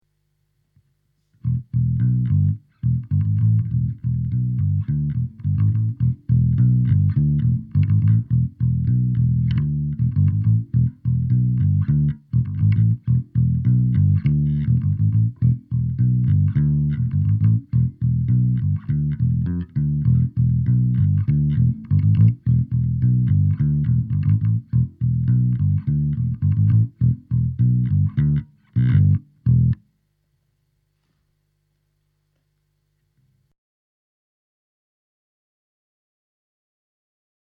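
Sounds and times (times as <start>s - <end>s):
bass: 1.2s - 30.0s.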